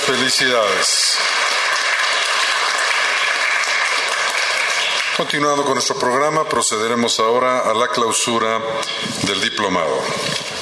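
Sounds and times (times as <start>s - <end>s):
audience applause for graduates: 0.0s - 6.9s
speech: 0.1s - 1.5s, 5.2s - 10.5s.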